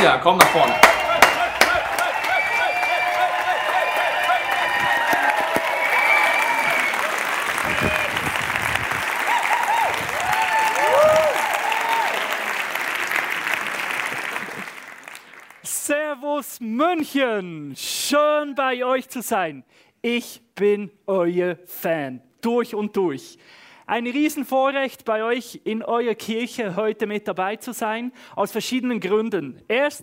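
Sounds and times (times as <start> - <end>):
speech: 0.0 - 0.9, 16.6 - 30.0
crowd cheering and applauding: 0.0 - 15.7
shouts and whoops: 0.4 - 12.6.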